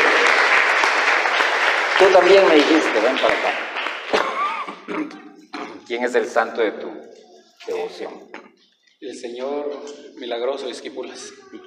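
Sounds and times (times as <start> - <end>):
crowd applauding: 0.0 - 4.9
speech: 2.0 - 3.7, 5.9 - 8.4, 9.0 - 11.6.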